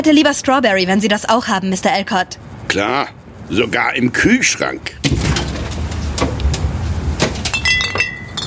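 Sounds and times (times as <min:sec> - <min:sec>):
speech: 0:00.0 - 0:05.2
low hum: 0:00.0 - 0:08.4
glass soda bottles set down: 0:07.2 - 0:08.4.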